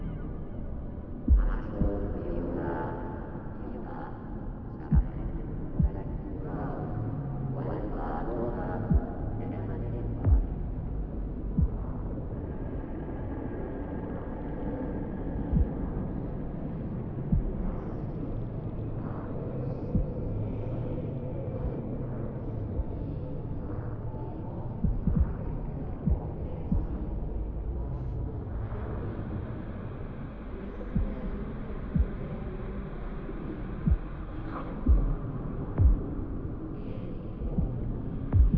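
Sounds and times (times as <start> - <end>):
background audio: 0.0 - 38.5.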